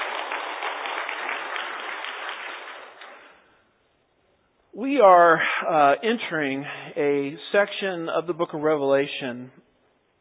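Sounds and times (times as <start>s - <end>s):
audience applause: 0.0s - 3.4s
speech: 4.8s - 9.6s.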